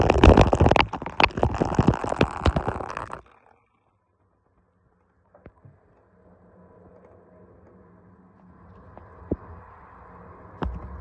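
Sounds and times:
urinating: 0:00.0 - 0:03.2.

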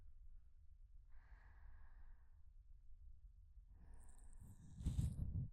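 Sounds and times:
ear cleaning loop on the right: 0:04.6 - 0:05.3.

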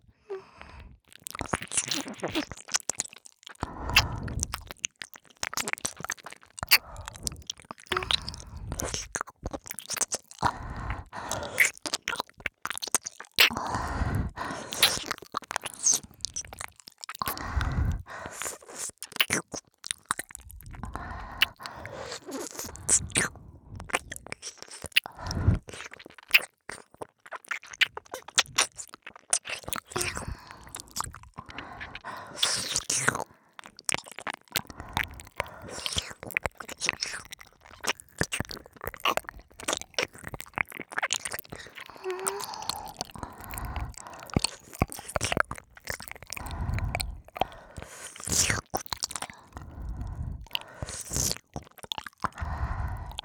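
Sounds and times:
ear licking on left and right: 0:01.1 - 0:53.2.

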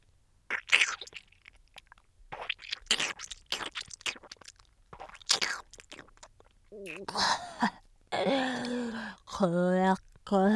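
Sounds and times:
ramen noodles being chewed in the mouth: 0:00.5 - 0:07.2
vocal sounds: 0:06.7 - 0:09.2
speech: 0:06.8 - 0:07.8, 0:09.4 - 0:10.5.

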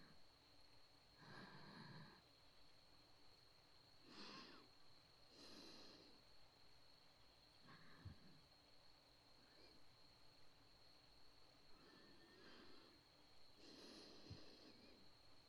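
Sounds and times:
breathing in the right ear: 0:01.2 - 0:02.4, 0:04.0 - 0:06.4, 0:07.6 - 0:08.5, 0:09.4 - 0:10.0, 0:11.7 - 0:15.4.

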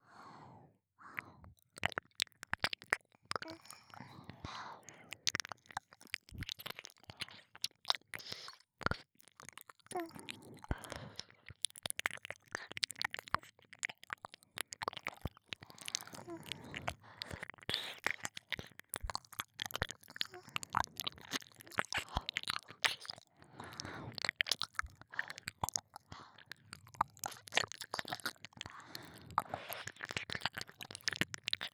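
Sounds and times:
binaural ear licking: 0:01.5 - 0:31.7.

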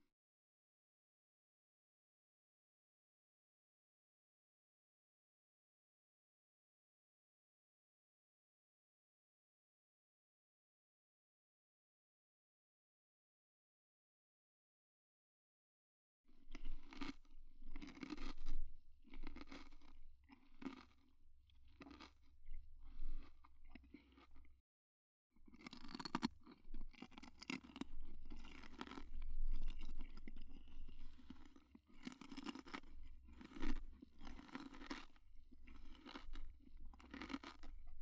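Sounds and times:
eating candied fruit: 0:16.6 - 0:21.1, 0:21.7 - 0:24.5, 0:25.5 - 0:38.0.

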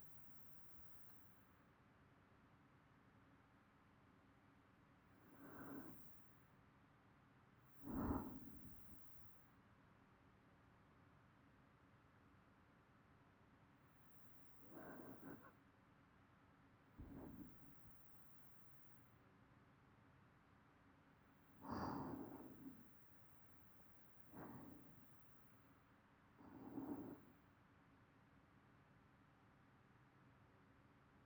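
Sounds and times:
person breathing in sleep loop: 0:05.2 - 0:06.3, 0:07.8 - 0:09.3, 0:14.2 - 0:15.5, 0:17.0 - 0:18.2, 0:21.6 - 0:25.4, 0:26.4 - 0:27.3.

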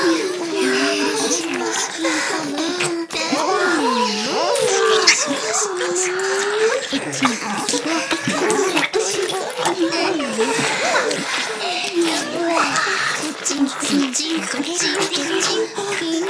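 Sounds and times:
ear licking: 0:00.0 - 0:16.2.

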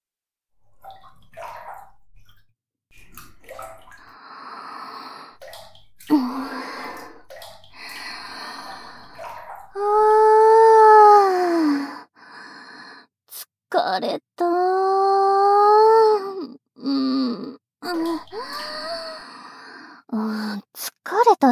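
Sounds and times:
oral sex sounds in a bathroom without bathroom effect: 0:06.1 - 0:12.1, 0:13.3 - 0:21.0.

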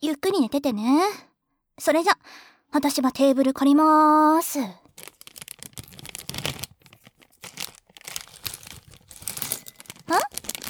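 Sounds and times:
speech: 0:00.0 - 0:05.1
crinkling rustles: 0:04.8 - 0:10.6
pistachio shells cracking as they are opened: 0:05.0 - 0:10.6.

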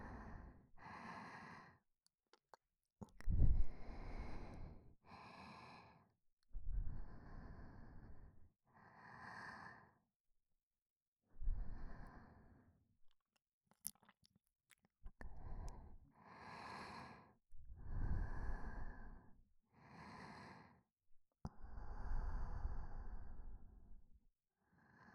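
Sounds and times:
breathing in the left ear: 0:00.0 - 0:01.8, 0:03.6 - 0:06.1, 0:06.8 - 0:10.1, 0:11.4 - 0:12.8, 0:15.3 - 0:20.9, 0:21.6 - 0:23.7, 0:24.6 - 0:25.1.

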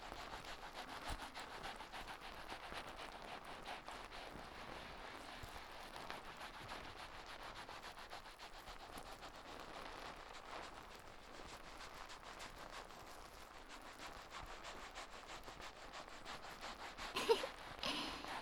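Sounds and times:
shampoo foam lathering on hair: 0:00.1 - 0:18.4.

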